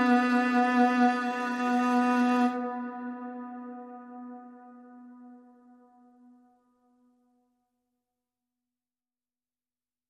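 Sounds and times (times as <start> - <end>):
strings: 0.0 - 5.8.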